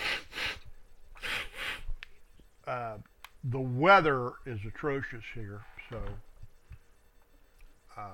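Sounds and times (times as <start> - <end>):
nasal sniffs while using a nasal spray for sinus trouble: 0.0 - 0.6, 1.2 - 1.9
speech: 2.7 - 6.3, 8.0 - 8.1.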